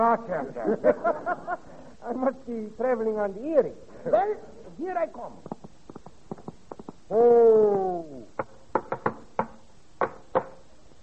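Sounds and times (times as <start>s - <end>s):
speech: 0.0s - 5.6s, 7.1s - 8.4s
laughter: 0.3s - 1.9s
horse hooves clip-clopping: 5.4s - 7.1s.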